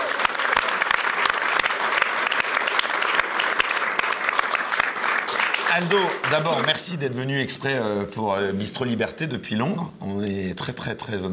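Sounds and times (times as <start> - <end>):
studio audience applause: 0.0 - 7.1
speech: 5.8 - 11.3.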